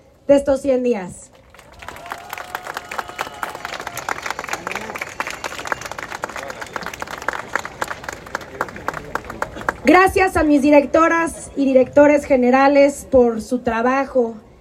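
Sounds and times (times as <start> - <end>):
speech: 0.3 - 1.2, 9.9 - 14.4
crowd applause: 1.5 - 10.0.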